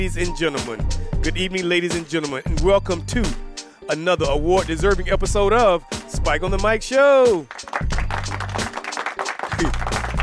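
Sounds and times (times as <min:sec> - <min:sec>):
speech: 0:00.0 - 0:08.0, 0:09.6 - 0:09.9
light applause from a small studio audience at a talk show: 0:07.4 - 0:10.2.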